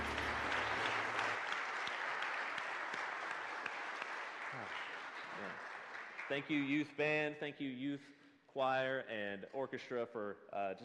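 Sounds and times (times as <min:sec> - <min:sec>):
applause: 0:00.0 - 0:07.3
speech: 0:06.3 - 0:10.8.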